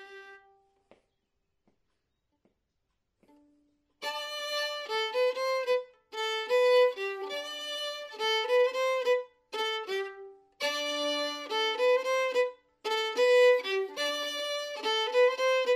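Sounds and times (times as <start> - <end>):
slow branle bourregade folk dance tune: 3.2 - 15.7.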